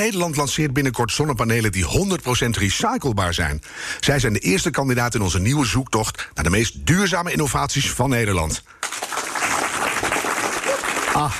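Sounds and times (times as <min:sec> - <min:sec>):
speech: 0:00.0 - 0:09.0, 0:11.2 - 0:11.3
spontaneous applause from a live audience: 0:08.8 - 0:11.3.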